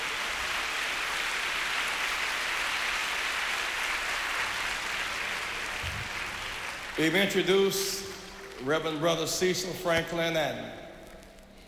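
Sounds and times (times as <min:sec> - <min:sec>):
audience applause: 0:00.0 - 0:09.3
speech: 0:07.0 - 0:08.0, 0:08.6 - 0:10.8.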